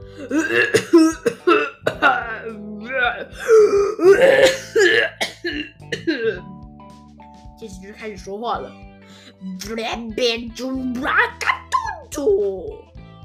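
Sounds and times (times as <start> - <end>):
speech: 0.2 - 1.0, 8.3 - 12.9
human voice imitating a unicorn coughing: 0.2 - 2.5, 3.3 - 6.5.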